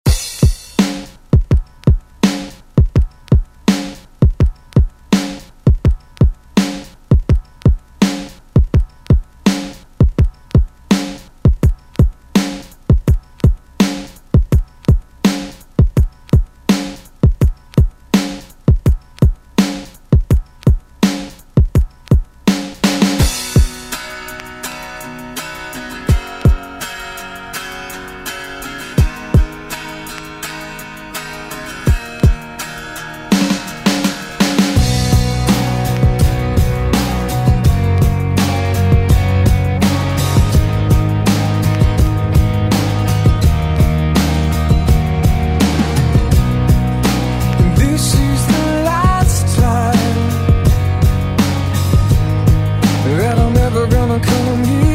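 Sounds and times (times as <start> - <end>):
rock music: 0.0 - 54.9.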